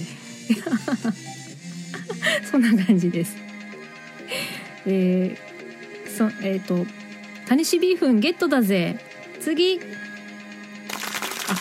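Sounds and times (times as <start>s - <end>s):
laughter: 0.5s - 1.2s
speech: 1.0s - 1.3s, 2.6s - 3.6s, 4.8s - 5.5s, 6.2s - 10.1s
applause sound effect: 10.9s - 11.5s.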